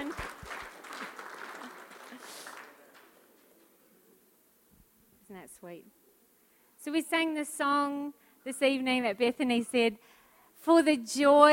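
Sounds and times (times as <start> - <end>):
audience applauding: 0.0 - 3.5
speech: 5.5 - 6.0, 6.8 - 11.5.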